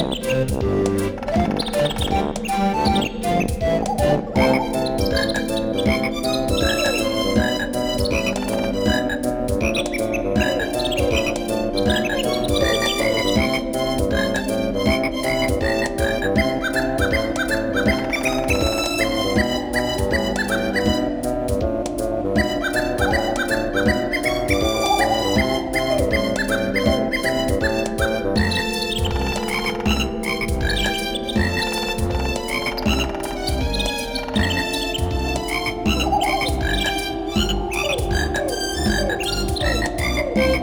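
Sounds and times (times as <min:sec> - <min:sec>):
autumn ambience: 0:00.0 - 0:40.6.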